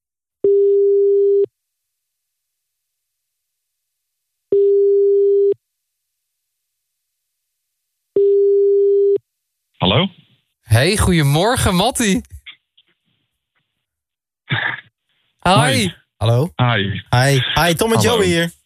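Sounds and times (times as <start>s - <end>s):
telephone ringback tone: 0.4s - 1.5s, 4.5s - 5.6s, 8.2s - 9.2s
speech: 9.9s - 10.2s, 10.8s - 12.4s, 15.4s - 18.6s.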